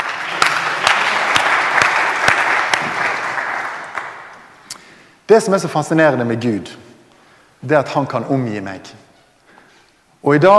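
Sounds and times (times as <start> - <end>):
audience applause: 0.0 - 4.4
speech: 5.3 - 6.9, 7.6 - 9.1, 10.2 - 10.5.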